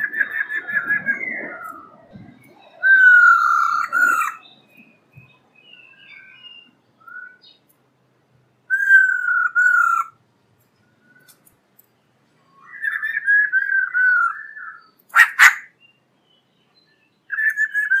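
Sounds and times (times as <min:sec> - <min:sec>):
black-throated laughingthrush song of whistles and a harsh burst: 0:00.0 - 0:07.6, 0:08.7 - 0:10.2, 0:12.5 - 0:16.0, 0:16.8 - 0:17.9.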